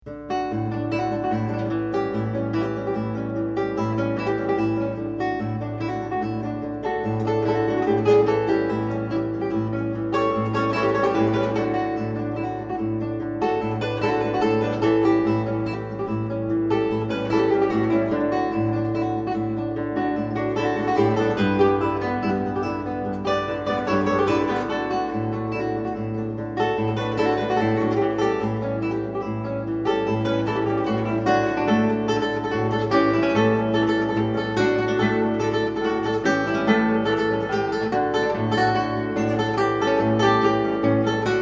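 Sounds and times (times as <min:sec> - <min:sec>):
merengue guitar: 0:00.0 - 0:41.4.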